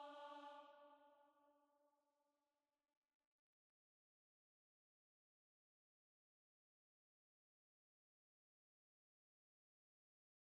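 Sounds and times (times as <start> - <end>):
choir singing: 0.0 - 1.2.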